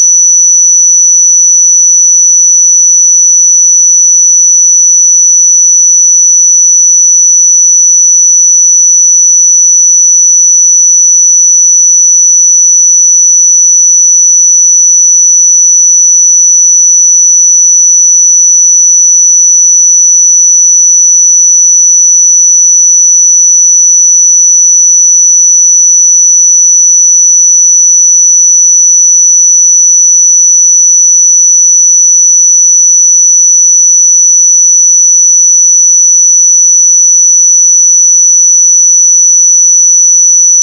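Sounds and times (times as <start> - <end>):
pure sine tone at 5936 Hz: 0.0 - 40.5.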